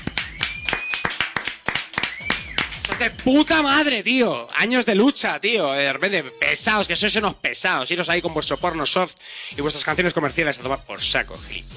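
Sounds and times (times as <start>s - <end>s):
hand clapping on a radio show: 0.0s - 3.8s
speech: 3.0s - 11.7s.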